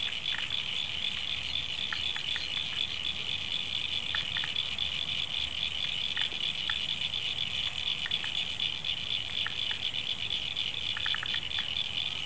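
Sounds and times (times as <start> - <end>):
frogs after rain: 0.0 - 12.2.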